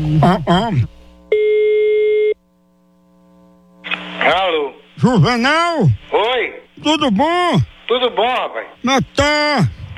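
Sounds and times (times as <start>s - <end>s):
speech: 0.0s - 1.0s, 4.2s - 9.9s
telephone ringback tone on a prank call: 1.3s - 2.4s.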